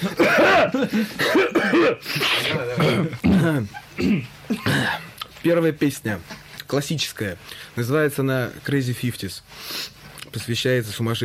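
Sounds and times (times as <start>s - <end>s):
speech: 0.0s - 4.3s, 5.4s - 11.2s
coughing and throat clearing: 0.0s - 5.2s.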